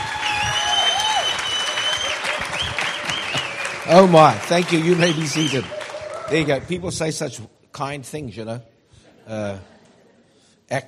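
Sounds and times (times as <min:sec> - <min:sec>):
audience applauding a speaker welcomed onto the stage: 0:00.0 - 0:06.8
speech: 0:03.9 - 0:08.7, 0:09.3 - 0:09.7, 0:10.7 - 0:10.8.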